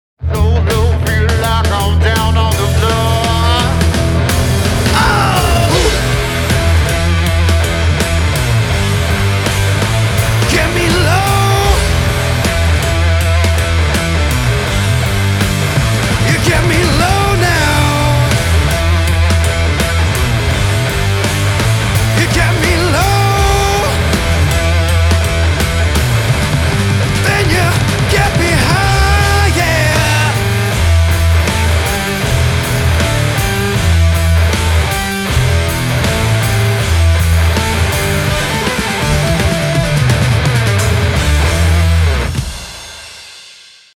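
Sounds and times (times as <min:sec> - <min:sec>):
mastered rock music sample: 0:00.2 - 0:43.9.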